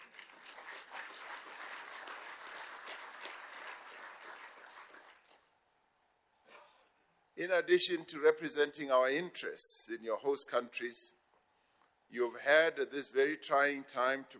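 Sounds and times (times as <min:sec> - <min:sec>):
audience round of applause: 0:00.0 - 0:05.4
speech: 0:07.4 - 0:11.2, 0:12.1 - 0:14.3.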